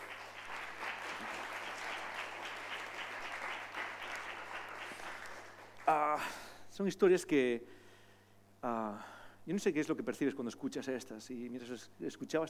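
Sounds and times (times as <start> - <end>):
audience applause: 0.0 - 6.0
speech: 5.9 - 7.8, 8.6 - 12.4.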